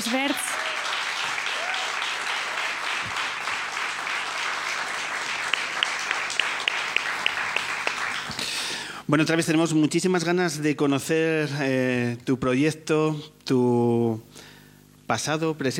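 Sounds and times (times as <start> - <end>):
speech: 0.0 - 0.6, 9.1 - 14.5, 15.1 - 15.7
crowd applauding: 0.0 - 8.8.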